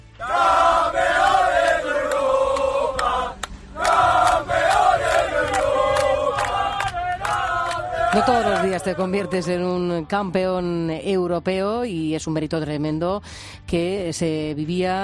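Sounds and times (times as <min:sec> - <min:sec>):
crowd roaring and cheering at final whistle: 0:00.2 - 0:10.3
speech: 0:08.2 - 0:15.0.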